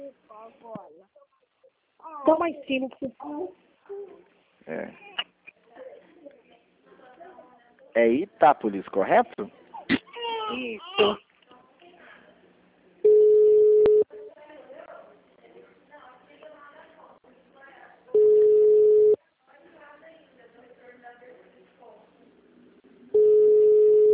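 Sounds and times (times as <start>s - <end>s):
speech: 2.2s - 3.6s, 4.7s - 5.1s, 8.0s - 11.3s
telephone line ringing tones: 13.0s - 14.1s, 18.2s - 19.2s, 23.1s - 24.1s.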